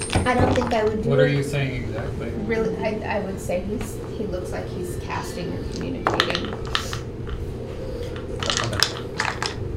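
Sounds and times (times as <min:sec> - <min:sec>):
speech: 0:00.2 - 0:06.9
dice rolling: 0:06.0 - 0:07.4, 0:08.0 - 0:09.6.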